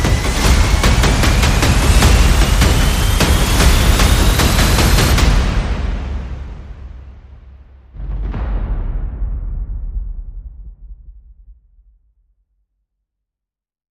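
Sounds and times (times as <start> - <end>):
sound effects: 0.0 - 7.0
percussion: 0.0 - 11.9.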